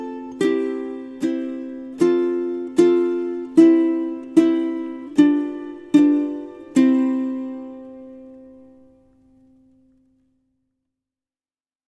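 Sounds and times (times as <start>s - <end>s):
nursery rhyme melody: 0.0s - 8.8s.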